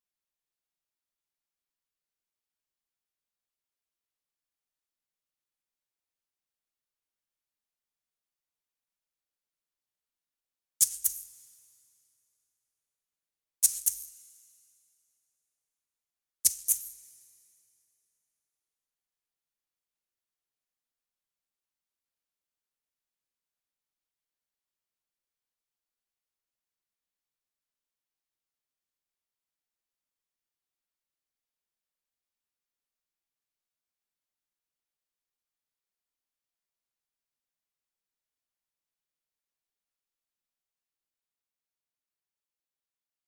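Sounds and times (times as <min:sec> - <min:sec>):
shaker: 0:10.8 - 0:12.0, 0:13.6 - 0:14.8, 0:16.4 - 0:17.8.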